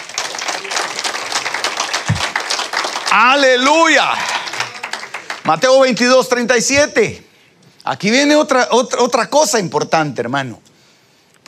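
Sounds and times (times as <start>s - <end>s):
audience applauding loudly: 0.0s - 6.4s
speech: 3.1s - 4.4s, 5.5s - 7.3s, 7.9s - 10.6s.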